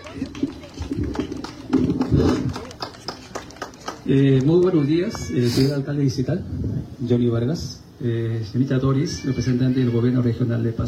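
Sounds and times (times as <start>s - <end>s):
audience applause: 0.0s - 4.9s
low murmur of voices: 0.0s - 10.8s
speech: 4.1s - 10.8s.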